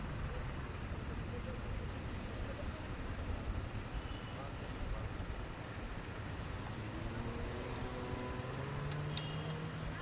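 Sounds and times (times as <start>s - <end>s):
dense traffic rumble in central Bogotá: 0.0s - 10.0s
sharp click: 8.9s - 9.4s.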